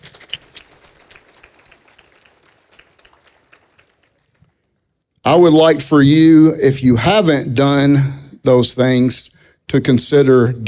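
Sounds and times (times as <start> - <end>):
audience applause: 0.0 - 4.6
speech: 5.3 - 10.6.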